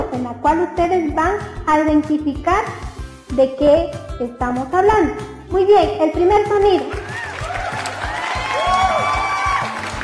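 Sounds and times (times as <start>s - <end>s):
speech: 0.2s - 7.0s
people applauding: 6.8s - 10.0s.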